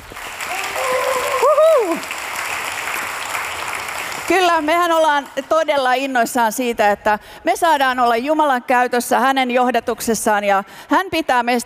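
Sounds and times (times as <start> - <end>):
audience applause: 0.0 - 5.6
person cheering: 0.5 - 2.1
speech: 4.3 - 11.6.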